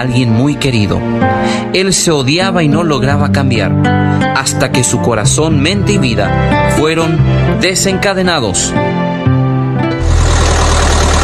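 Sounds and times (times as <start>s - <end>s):
speech: 0.0s - 9.1s
car engine running as a car drives off: 10.0s - 11.2s.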